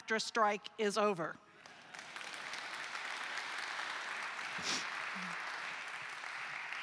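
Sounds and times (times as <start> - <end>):
speech: 0.1 - 1.4, 4.6 - 5.5
crowd applause: 1.6 - 6.8.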